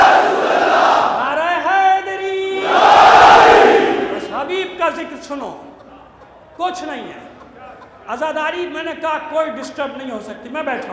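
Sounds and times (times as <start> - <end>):
crowd shouting a religious slogan: 0.0 - 1.2, 2.5 - 4.4
speech: 5.2 - 5.8, 6.6 - 7.2, 8.1 - 10.9.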